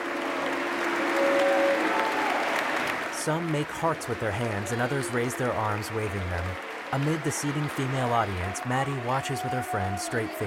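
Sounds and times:
applause from a male audience in a Missouri Boys State chamber: 0.0 - 10.4
speech: 3.2 - 10.4.

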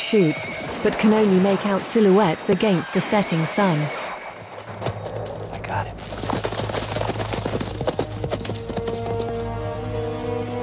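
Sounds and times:
speech: 0.1 - 4.0, 5.7 - 6.0
horses galloping away in a film scene: 4.3 - 10.6.

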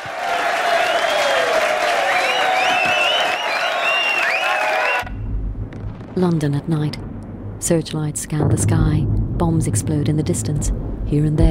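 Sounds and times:
audience of servicemen cheering and applauding at a wartime stage show: 0.0 - 5.2
servicemen whistling: 0.6 - 5.3
speech: 6.2 - 11.4.

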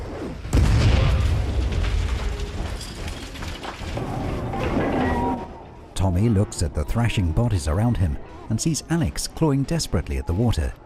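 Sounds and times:
deep rumbling: 0.0 - 6.0
heavy explosion boom ripping through a stricken ship: 0.5 - 3.5
speech: 6.1 - 10.8.

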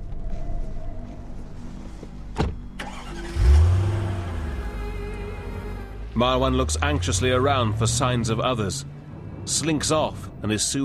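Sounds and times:
car driving away: 2.8 - 10.8
speech: 6.2 - 10.8.

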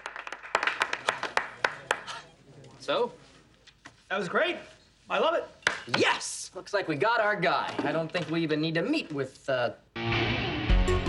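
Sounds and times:
man clapping in a bank meeting: 0.0 - 2.1
speech: 2.9 - 3.3, 4.1 - 10.2.

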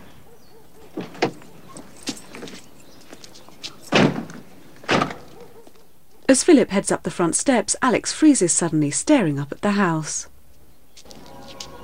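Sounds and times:
car doors opening and closing: 0.9 - 2.6, 3.8 - 5.4
speech: 6.3 - 10.3.

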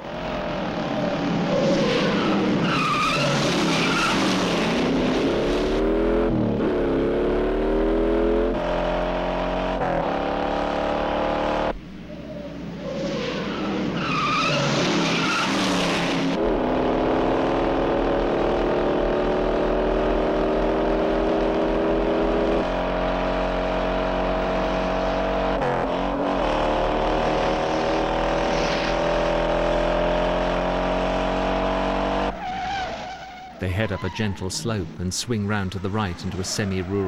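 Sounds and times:
sedan tires squealing in a car chase: 0.0 - 5.8, 12.2 - 18.4, 22.4 - 34.9, 35.7 - 37.0
battered sedan engine revving in a car chase: 0.0 - 11.8, 13.7 - 33.0
speech: 33.6 - 37.0.

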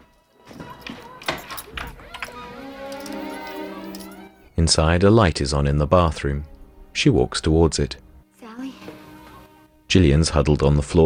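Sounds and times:
keys unlocking a door: 0.0 - 4.6
speech: 4.6 - 8.0, 9.9 - 11.0.

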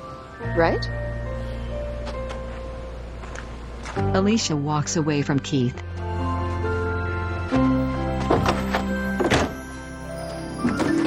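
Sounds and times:
steady humming musical bed: 0.0 - 11.0
speech: 0.5 - 1.0, 4.0 - 5.9
car tailgate slamming shut: 8.2 - 9.6.

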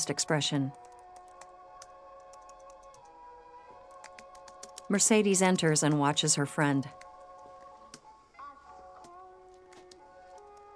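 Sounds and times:
speech: 0.0 - 0.9, 4.9 - 7.0
computer keyboard typing: 0.7 - 3.1, 3.9 - 5.0.

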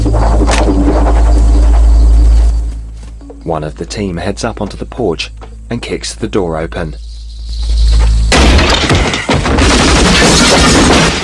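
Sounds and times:
low rumble: 0.0 - 8.6
speech: 3.5 - 7.1
gunfire knocking wooden boards out of house walls: 9.4 - 11.2.

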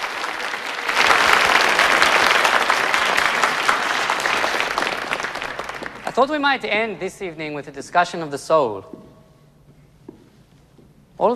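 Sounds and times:
packed house audience applause at a stage magic show: 0.0 - 6.4
speech: 6.2 - 9.0, 11.2 - 11.3.

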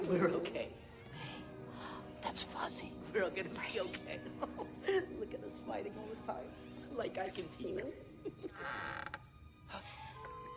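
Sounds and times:
speech: 0.1 - 0.8, 2.7 - 9.8
door creaking open: 8.5 - 9.4.

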